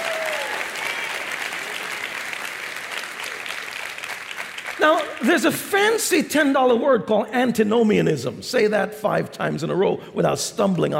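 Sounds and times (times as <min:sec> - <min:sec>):
audience applauding: 0:00.0 - 0:06.0
speech: 0:04.8 - 0:10.9.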